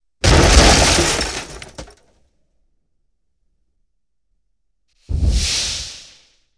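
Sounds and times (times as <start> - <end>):
explosion: 0.2 - 1.9.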